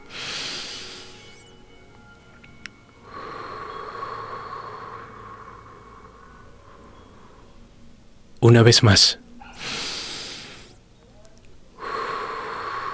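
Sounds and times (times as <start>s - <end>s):
deep breathing: 0.0s - 1.5s, 3.0s - 7.8s, 9.4s - 10.8s, 11.8s - 12.9s
speech: 8.5s - 9.2s.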